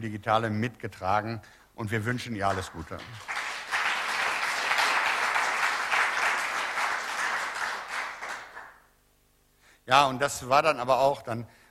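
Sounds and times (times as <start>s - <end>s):
speech: 0.0s - 3.4s, 9.9s - 11.6s
audience applause: 2.5s - 8.8s.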